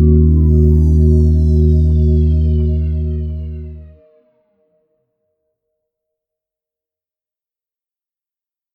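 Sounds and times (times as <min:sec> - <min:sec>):
expansive guitar effect patch with chorus and delay: 0:00.0 - 0:04.1.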